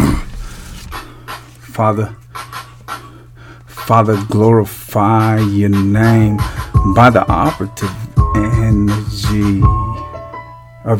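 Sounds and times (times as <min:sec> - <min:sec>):
heavy panting: 0:00.0 - 0:01.6, 0:02.4 - 0:03.8
speech: 0:01.8 - 0:02.2, 0:03.9 - 0:10.0.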